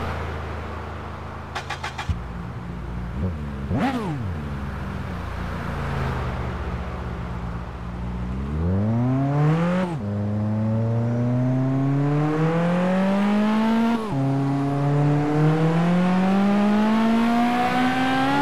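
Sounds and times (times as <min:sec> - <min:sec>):
Audi S6 engine: 0:00.0 - 0:18.4.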